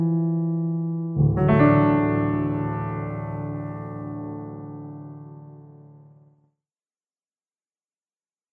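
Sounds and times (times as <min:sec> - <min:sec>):
piano: 0:00.0 - 0:06.4.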